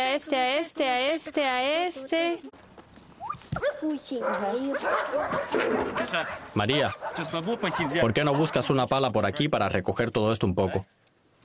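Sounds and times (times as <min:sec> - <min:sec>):
speech: 0:00.0 - 0:02.6, 0:03.6 - 0:11.0
several dogs barking and yelping: 0:03.2 - 0:08.8.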